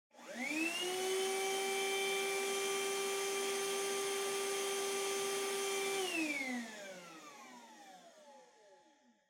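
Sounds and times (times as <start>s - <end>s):
distant vacuum cleaner: 0.2s - 8.7s.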